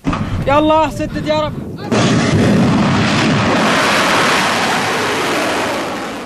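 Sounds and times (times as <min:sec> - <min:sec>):
ballistic missile launches: 0:00.0 - 0:06.2
drone launches: 0:01.9 - 0:06.2.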